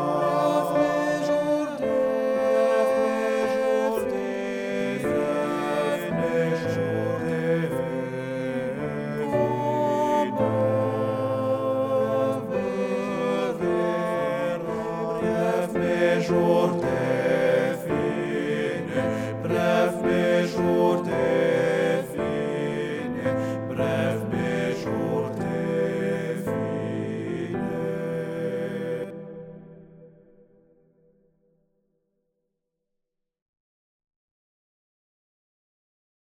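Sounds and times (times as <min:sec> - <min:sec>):
full ensemble singing: 0:00.0 - 0:30.2.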